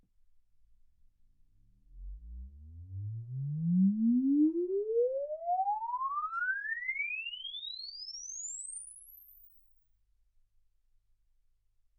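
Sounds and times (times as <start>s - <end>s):
exponential sine sweep from 10 Hz to 24 kHz: 2.0s - 9.7s.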